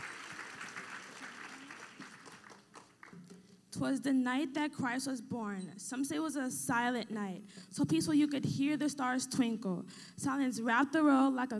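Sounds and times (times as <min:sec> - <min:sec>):
audience applauding to welcome children: 0:00.0 - 0:03.3
speech: 0:03.8 - 0:11.5.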